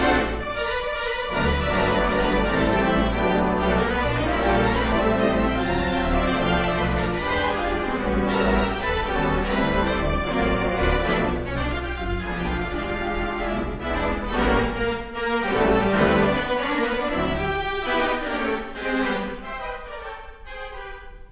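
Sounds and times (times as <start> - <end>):
theatre organ: 0.0 - 21.3.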